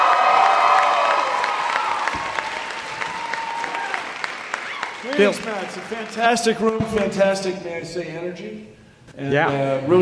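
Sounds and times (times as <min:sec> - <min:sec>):
audience in an auditorium applauding and cheering at a science talk: 0:00.0 - 0:06.9
speech: 0:05.2 - 0:10.0.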